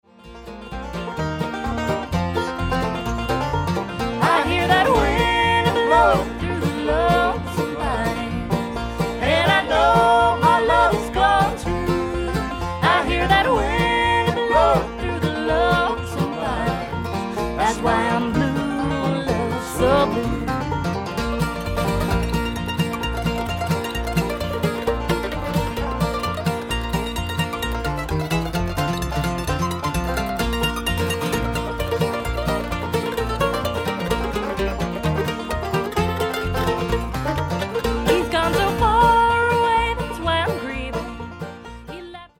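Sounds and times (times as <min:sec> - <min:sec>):
blues music: 0:00.1 - 0:42.3.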